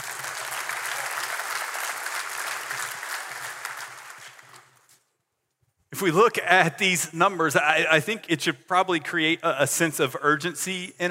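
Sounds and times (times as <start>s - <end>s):
audience applause: 0.0s - 4.8s
speech: 6.0s - 11.1s.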